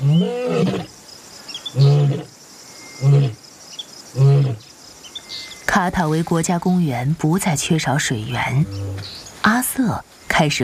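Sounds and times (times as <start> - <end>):
lion roaring: 0.0 - 0.9, 1.7 - 2.3, 3.0 - 3.4, 4.2 - 4.6
insects buzzing: 0.0 - 10.6
speech: 0.2 - 0.9, 5.8 - 10.6.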